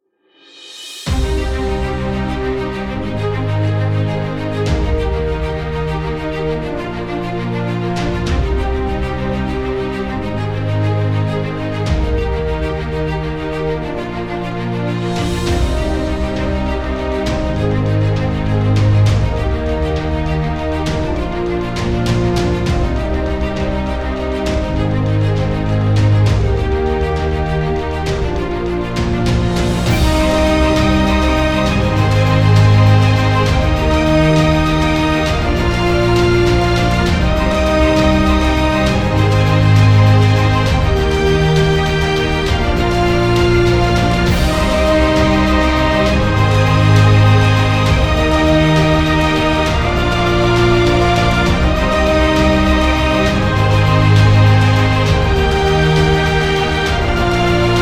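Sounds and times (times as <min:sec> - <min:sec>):
epic inspiring music: 0:00.4 - 0:57.8.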